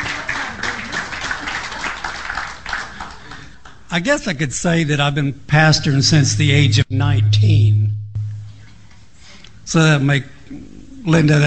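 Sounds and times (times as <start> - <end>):
audience applause welcoming a guest speaker at a church gathering: 0.0 - 3.5
speech: 3.9 - 8.0, 9.7 - 11.4.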